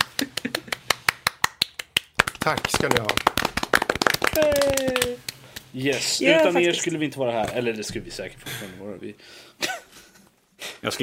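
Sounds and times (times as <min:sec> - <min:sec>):
hand clapping applause: 0:00.0 - 0:05.7
speech: 0:02.4 - 0:03.3, 0:04.4 - 0:09.6, 0:10.8 - 0:11.0.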